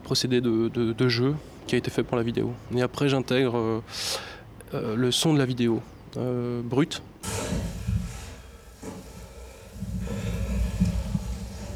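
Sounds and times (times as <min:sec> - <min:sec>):
speech: 0:00.1 - 0:07.7
heavy breathing of a performer: 0:03.9 - 0:04.6, 0:07.2 - 0:11.7
soft rustling: 0:07.2 - 0:11.7.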